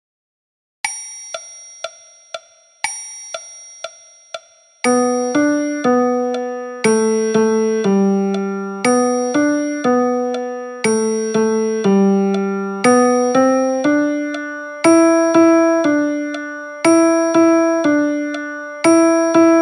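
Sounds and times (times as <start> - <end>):
piano music: 4.8 - 19.6.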